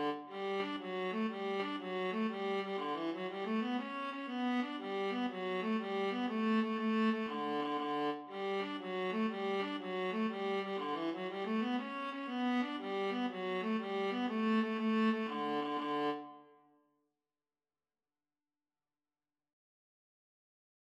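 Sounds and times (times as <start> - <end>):
viola duet playing an Irish jig medley: 0.0 - 16.4.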